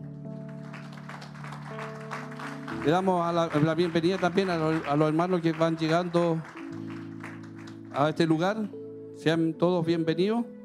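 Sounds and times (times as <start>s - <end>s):
audience applauding: 0.4s - 8.4s
speech: 2.8s - 6.9s, 8.0s - 10.6s.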